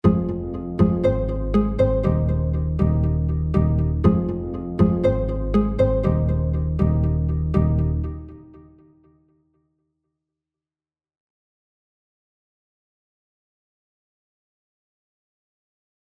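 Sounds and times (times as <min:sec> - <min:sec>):
plucked analog strings rhythm: 0:00.0 - 0:09.0.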